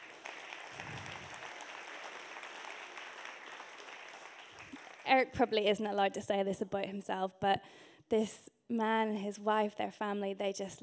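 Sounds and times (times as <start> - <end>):
faint audience applause welcoming a speaker: 0.0 - 5.3
speech: 5.1 - 10.8.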